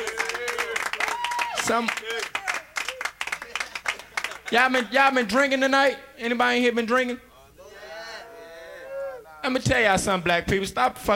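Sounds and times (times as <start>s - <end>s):
audience applause: 0.0s - 4.6s
speech: 1.6s - 2.4s, 4.5s - 7.3s, 9.4s - 11.1s.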